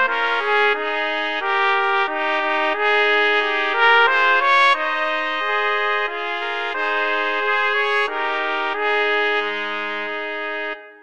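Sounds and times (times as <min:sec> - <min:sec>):
trumpet trio playing: 0:00.0 - 0:10.9.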